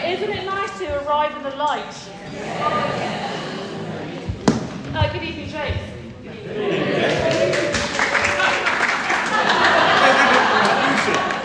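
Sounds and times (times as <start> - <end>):
speech: 1.1 - 3.3, 4.9 - 7.6
laughter: 2.2 - 4.4, 6.1 - 11.4
audience applause: 6.9 - 11.4.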